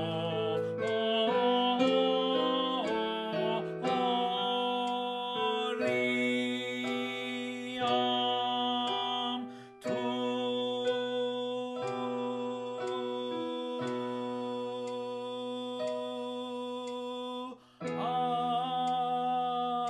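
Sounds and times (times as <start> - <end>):
slow tenor melody: 0.0 - 19.8.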